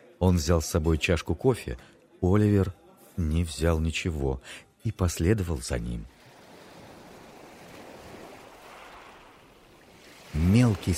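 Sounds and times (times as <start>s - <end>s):
speech: 0.2s - 6.2s, 10.4s - 10.9s
ocean waves breaking: 6.1s - 10.9s.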